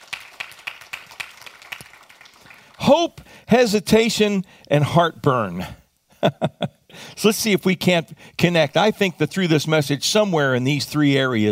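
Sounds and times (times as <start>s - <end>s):
audience clapping in rhythm: 0.0s - 3.3s
speech: 2.9s - 11.4s.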